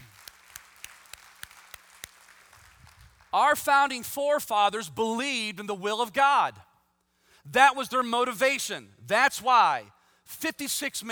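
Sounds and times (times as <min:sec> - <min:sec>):
audience hand clapping: 0:00.0 - 0:03.4
speech: 0:03.3 - 0:06.7, 0:07.5 - 0:11.0.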